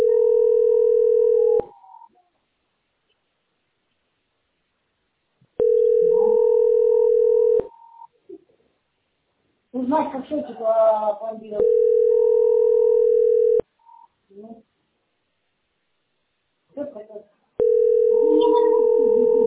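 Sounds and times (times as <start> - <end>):
telephone ringback tone: 0.0 - 1.8, 5.6 - 8.0, 11.6 - 13.6, 17.6 - 19.4
speech: 9.9 - 12.3.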